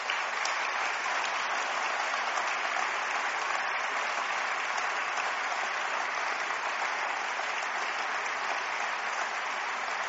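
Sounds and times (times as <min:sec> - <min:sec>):
crowd applause: 0:00.0 - 0:10.0.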